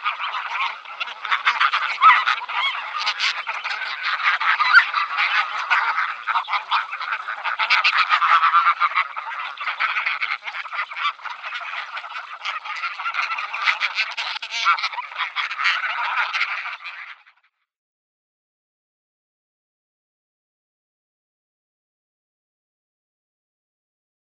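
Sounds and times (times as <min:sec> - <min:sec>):
Greylag goose giving loud nasal honks: 0:00.0 - 0:17.4.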